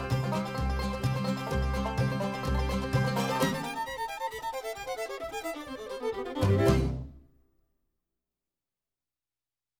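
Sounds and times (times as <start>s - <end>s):
acoustic instrumental music: 0.0s - 7.3s.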